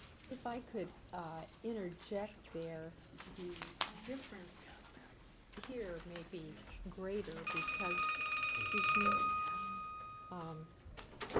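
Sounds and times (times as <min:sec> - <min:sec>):
speech: 0:00.4 - 0:04.8, 0:05.6 - 0:09.4, 0:10.3 - 0:11.3
mobile phone ringing during a legislative committee hearing: 0:07.4 - 0:10.7.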